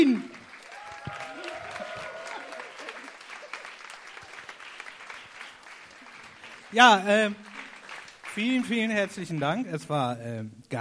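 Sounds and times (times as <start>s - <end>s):
crowd applauding: 0.0s - 10.0s
cheering and whistling: 0.6s - 3.5s
speech: 6.7s - 7.5s, 8.4s - 10.7s.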